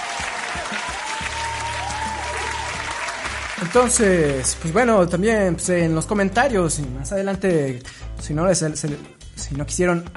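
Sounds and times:
applause sound effect: 0.0 - 4.9
speech: 3.6 - 10.1.

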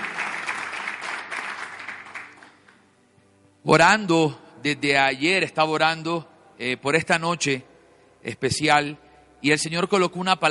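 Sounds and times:
audience applause: 0.0 - 2.8
speech: 3.6 - 10.4.

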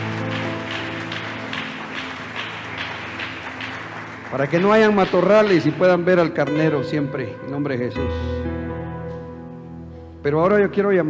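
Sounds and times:
crowd clapping in rhythm: 0.0 - 6.3
speech: 4.3 - 8.6, 10.2 - 11.0.

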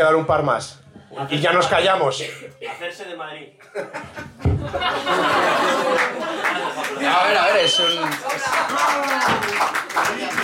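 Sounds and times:
speech: 0.0 - 10.4
laughter: 3.6 - 10.4
audience clapping: 5.2 - 10.4.

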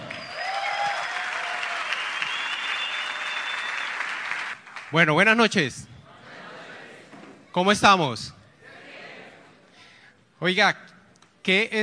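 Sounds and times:
audience applause: 0.0 - 5.0
speech: 4.9 - 5.9, 7.6 - 8.4, 10.4 - 11.8.

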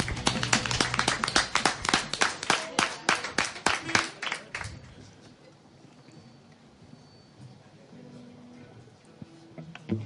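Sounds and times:
audience clapping: 0.0 - 4.9.

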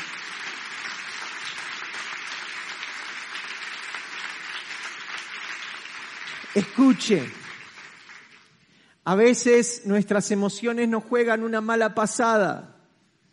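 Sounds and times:
audience applause: 0.0 - 8.5
speech: 6.5 - 7.4, 9.1 - 12.8.

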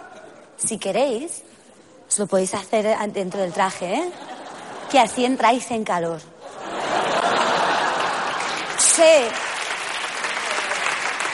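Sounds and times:
speech: 0.6 - 1.5, 2.1 - 4.3, 4.9 - 6.3, 9.0 - 9.4
laughter: 3.9 - 5.3, 6.4 - 9.0
audience applause: 6.9 - 11.3.

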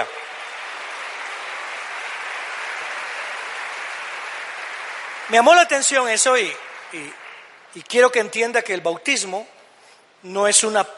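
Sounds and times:
audience applauding: 0.0 - 8.0
speech: 5.3 - 9.6, 10.2 - 10.9.

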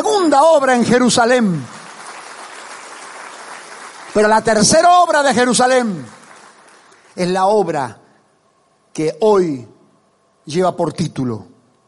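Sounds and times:
speech: 0.0 - 1.8, 4.2 - 6.2, 7.2 - 8.0, 9.0 - 9.7, 10.4 - 11.5
audience applauding: 1.1 - 7.2.

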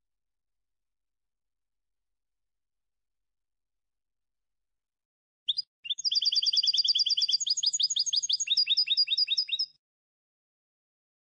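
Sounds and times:
European goldfinch song: 5.5 - 9.8.

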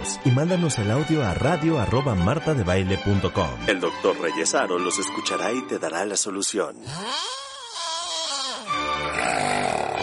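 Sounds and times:
speech: 0.2 - 7.4
snoring: 6.8 - 10.0.

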